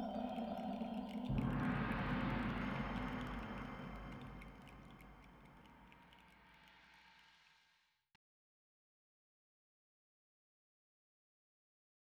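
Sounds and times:
ice world ambience: 0.0s - 7.2s.

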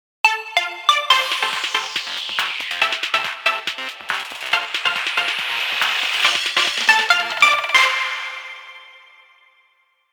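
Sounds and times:
noon radio jingle: 0.3s - 8.3s.

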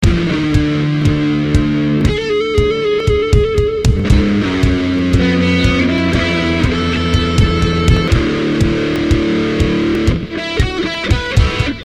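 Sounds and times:
bad guitar solo: 0.0s - 11.8s.

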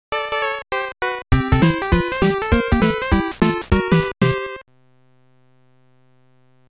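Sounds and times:
gameplay music: 0.1s - 4.6s.

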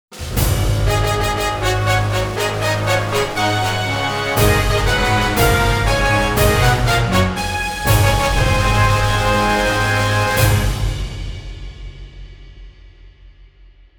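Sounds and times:
classical background music: 0.7s - 11.2s.

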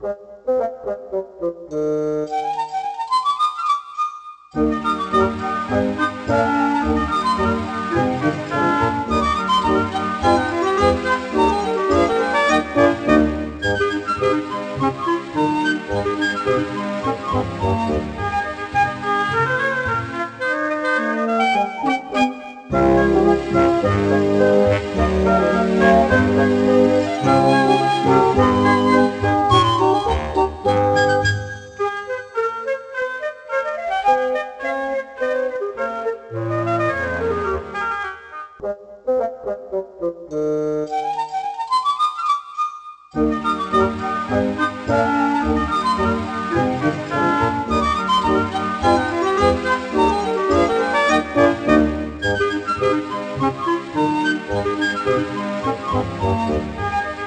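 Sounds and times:
music without drums: 0.0s - 57.2s.

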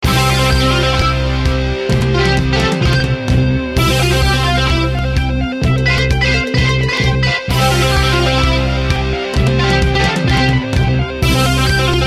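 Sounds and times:
metal music loop: 0.0s - 12.0s.

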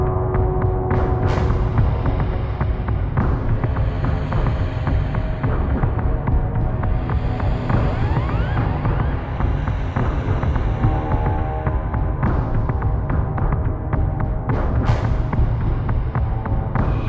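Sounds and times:
creepy combat ambience: 0.0s - 17.0s.

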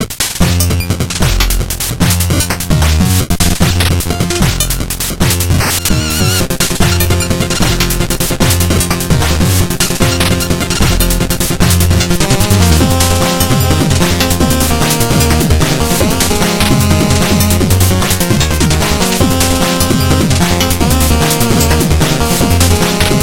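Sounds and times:
game level music: 0.0s - 23.2s.

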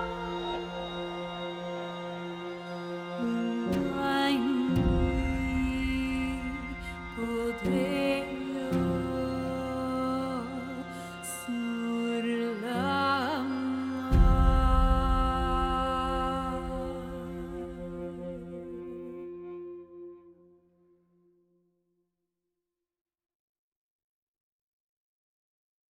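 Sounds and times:
lullaby with vocals: 0.0s - 20.0s.

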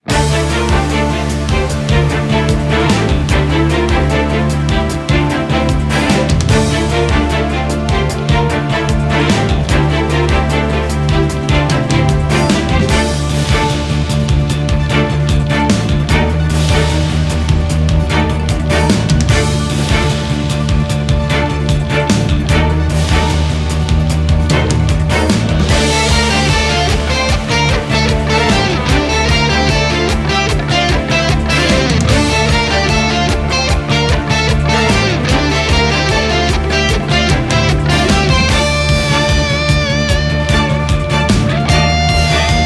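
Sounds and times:
duel pinch background music: 0.0s - 42.6s.

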